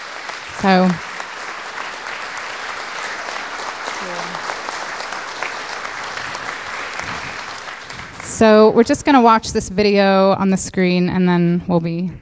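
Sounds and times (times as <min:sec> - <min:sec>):
round of applause from a crowd: 0:00.0 - 0:09.2
speech: 0:00.6 - 0:01.1, 0:08.4 - 0:12.1
low vocal murmur: 0:03.9 - 0:04.6.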